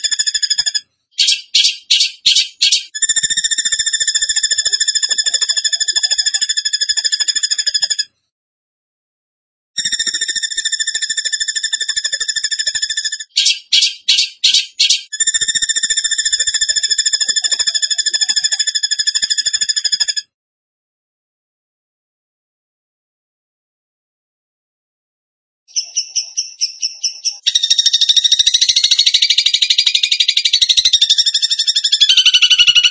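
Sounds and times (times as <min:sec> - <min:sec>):
bird song trill: 0:00.0 - 0:08.1, 0:09.8 - 0:20.3, 0:25.7 - 0:32.9.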